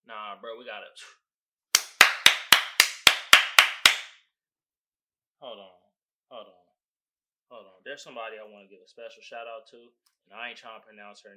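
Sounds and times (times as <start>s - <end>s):
speech: 0.4s - 1.2s, 5.4s - 6.7s, 7.5s - 11.3s
hand claps: 1.7s - 4.2s.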